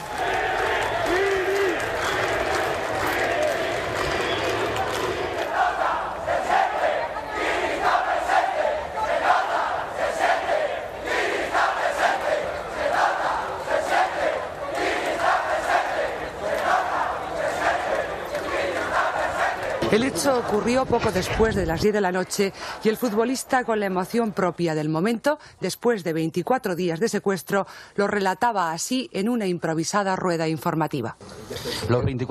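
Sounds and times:
crowd of thousands celebrating outside police headquarters: 0.0 - 23.7
speech: 20.2 - 32.2.

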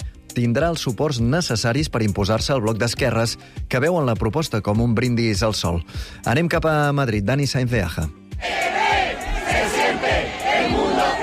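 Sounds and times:
speech: 0.4 - 8.5
clamour of hundreds of protesters chanting and shouting: 8.4 - 11.2.

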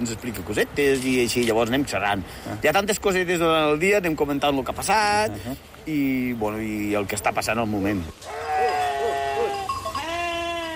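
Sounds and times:
speech: 0.0 - 8.4
sheep bleating at night in a fold: 8.2 - 10.7.

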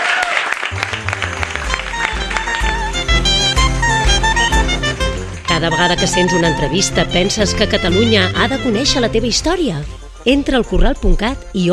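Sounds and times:
audience applause: 0.0 - 6.1
speech: 5.6 - 11.7.

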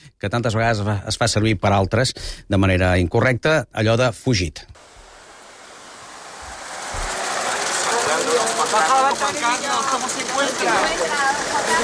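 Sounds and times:
speech: 0.2 - 4.9, 8.7 - 11.8
car arriving at a house: 4.8 - 11.8
indistinct overlapping voices: 7.4 - 11.8.

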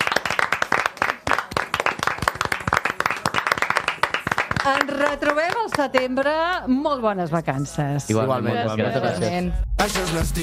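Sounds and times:
applause for a retiring colleague: 0.0 - 6.2
speech: 4.7 - 10.4.

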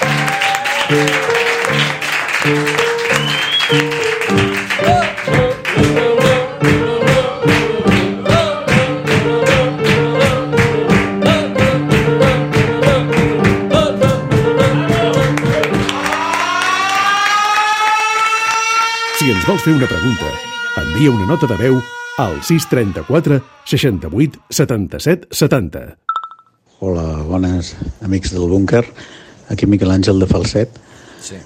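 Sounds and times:
loud applause: 0.0 - 13.3, 14.6 - 24.8
speech: 0.9 - 2.8, 3.7 - 4.0, 19.6 - 20.4, 21.0 - 26.1, 26.8 - 31.4.

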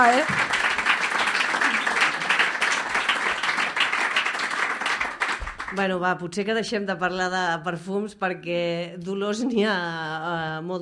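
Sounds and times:
speech: 0.0 - 0.6, 5.7 - 10.8
audience applause: 0.0 - 5.8.

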